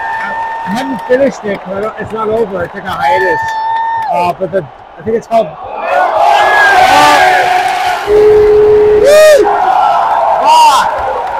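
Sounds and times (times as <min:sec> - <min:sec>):
crowd cheering and yelling: 0:00.0 - 0:11.3
speech: 0:00.7 - 0:05.7, 0:08.1 - 0:08.4
whoops and shouted cries: 0:03.0 - 0:04.2, 0:08.1 - 0:11.3.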